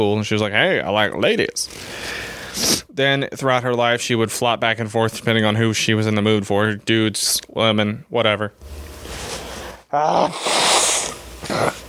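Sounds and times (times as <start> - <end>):
speech: 0.0 - 2.0, 2.6 - 8.8, 9.9 - 10.6
person sneezing: 9.9 - 11.8.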